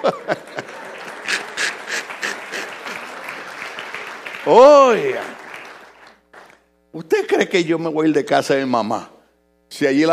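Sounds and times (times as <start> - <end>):
laughter: 0.0 - 3.9
applause: 0.0 - 6.7
speech: 4.5 - 5.3, 7.1 - 9.1, 9.8 - 10.1.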